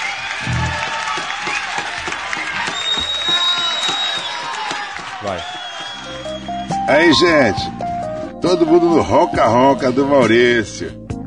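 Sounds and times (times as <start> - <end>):
crowd shouting and cheering: 0.0 - 7.1
people clapping: 0.0 - 7.1
speech: 6.9 - 7.8, 8.4 - 11.0.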